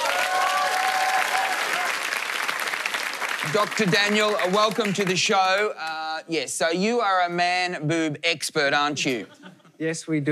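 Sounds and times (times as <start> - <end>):
talk show studio audience applauding a cosmetic surgeon guest: 0.0 - 6.0
speech: 3.4 - 10.2.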